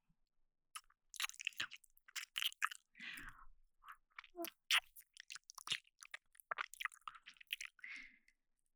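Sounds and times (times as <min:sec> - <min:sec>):
ear licking in left and right channels: 0:01.2 - 0:02.8, 0:04.4 - 0:07.8.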